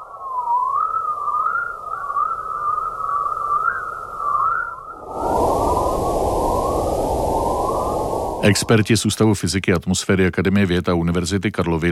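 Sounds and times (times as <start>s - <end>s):
electromagnetic space waves chirping: 0.0s - 8.7s
soft hiss: 4.9s - 9.7s
speech: 8.4s - 11.8s.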